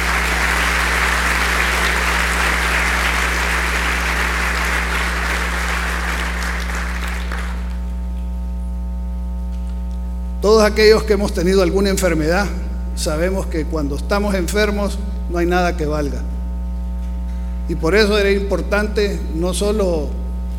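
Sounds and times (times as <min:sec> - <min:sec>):
crowd applauding: 0:00.0 - 0:07.9
low electrical hum: 0:00.0 - 0:20.5
speech: 0:10.5 - 0:16.3, 0:17.7 - 0:20.5.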